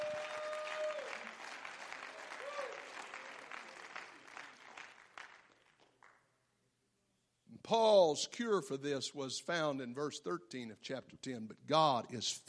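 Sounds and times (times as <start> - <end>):
audience clapping hands: 0.0 - 6.4
speech: 7.7 - 12.4.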